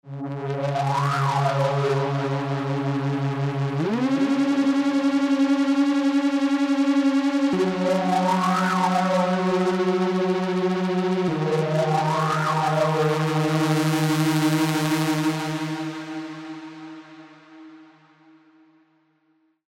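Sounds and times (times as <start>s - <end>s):
synth pads: 0.1s - 18.5s.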